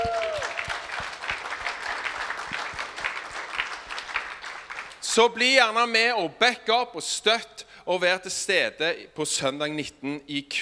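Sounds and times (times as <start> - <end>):
audience applause: 0.0 - 5.0
speech: 5.2 - 10.5.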